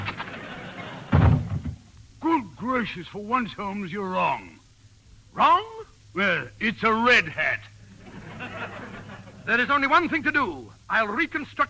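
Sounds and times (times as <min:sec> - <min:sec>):
laughter: 0:00.0 - 0:01.2, 0:07.9 - 0:09.6
door opening: 0:01.1 - 0:01.9
speech: 0:02.7 - 0:04.6, 0:05.4 - 0:07.8, 0:09.5 - 0:11.6.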